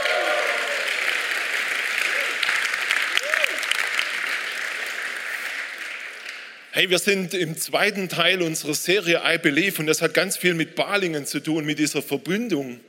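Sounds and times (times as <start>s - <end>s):
audience applause: 0.0s - 6.7s
speech: 6.8s - 12.8s.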